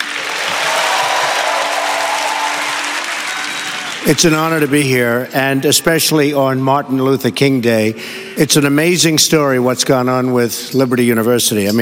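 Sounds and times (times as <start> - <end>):
crowd at Liberty University applauding Donald Trump: 0.0 - 4.9
speech: 4.0 - 11.8.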